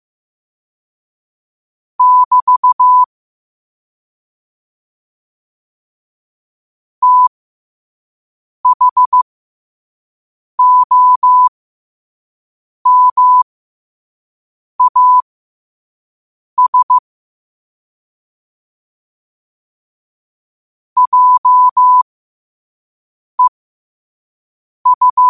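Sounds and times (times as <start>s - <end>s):
morse code at 5 wpm: 2.0s - 3.1s, 7.0s - 7.3s, 8.7s - 9.2s, 10.6s - 11.5s, 12.9s - 13.4s, 14.8s - 15.2s, 16.6s - 17.0s, 21.0s - 22.0s, 24.9s - 25.2s.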